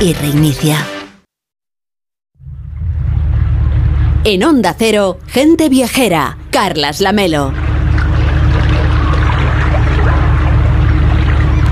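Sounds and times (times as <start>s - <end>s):
speech: 0.0s - 0.9s, 4.2s - 7.7s
small fishing boat engine departing Norwegian harbor: 2.4s - 11.7s
splashing, trickling water in harbor: 7.2s - 11.7s.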